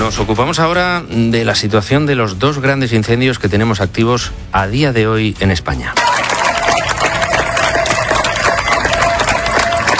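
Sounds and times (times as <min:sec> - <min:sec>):
speech: 0:00.1 - 0:06.1
neighbours of Niebla in Huelva applauding outdoors: 0:06.0 - 0:09.9.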